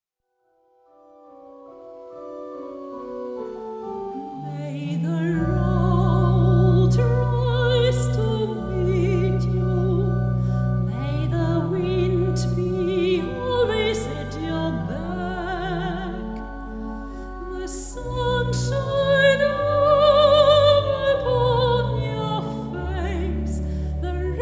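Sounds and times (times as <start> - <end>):
female soprano singing: 4.1 - 24.4.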